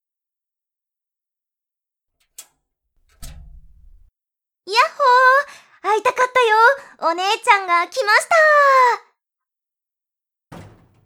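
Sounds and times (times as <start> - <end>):
door shutting with heavy dull thud: 3.0 - 4.1, 10.5 - 11.0
speech: 6.0 - 9.1.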